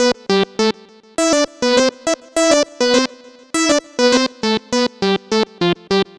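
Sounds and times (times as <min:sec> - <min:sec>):
light synth: 0:00.0 - 0:06.0.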